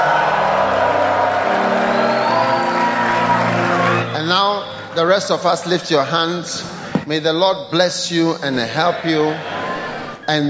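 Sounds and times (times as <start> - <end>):
audience shouting praise: 0.0 - 4.6, 8.4 - 10.2
speech: 5.0 - 9.6, 10.3 - 10.4.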